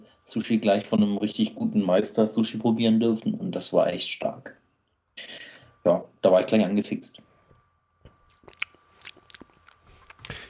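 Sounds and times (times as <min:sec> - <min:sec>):
speech: 0:00.3 - 0:04.6, 0:05.2 - 0:07.3
person sipping a drink from a glass: 0:08.3 - 0:10.4.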